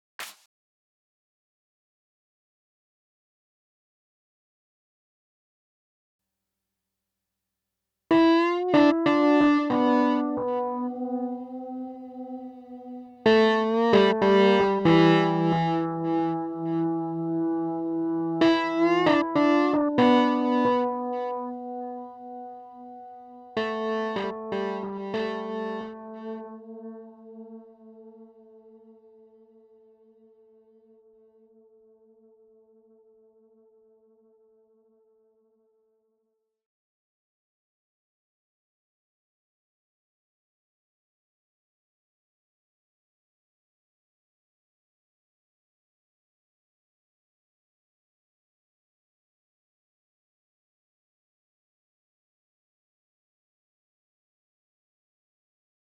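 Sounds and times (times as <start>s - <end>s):
keyboard playing: 8.1s - 27.8s.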